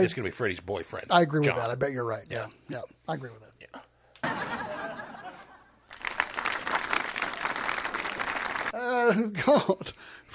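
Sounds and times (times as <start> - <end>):
speech: 0.0 - 3.8, 9.0 - 10.3
laughter: 4.2 - 5.8
students clapping: 5.9 - 8.8.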